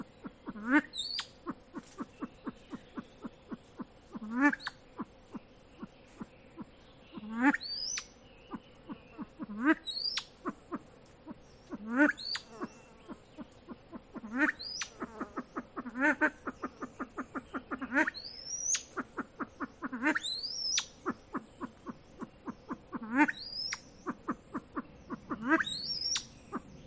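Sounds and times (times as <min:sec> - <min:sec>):
silver pheasant clucking: 0:00.0 - 0:26.8
bird whistling: 0:00.9 - 0:03.7, 0:07.6 - 0:08.6, 0:09.2 - 0:10.3, 0:12.1 - 0:13.2, 0:14.5 - 0:15.0, 0:18.1 - 0:19.3, 0:20.1 - 0:21.7, 0:23.2 - 0:23.9, 0:25.1 - 0:26.4.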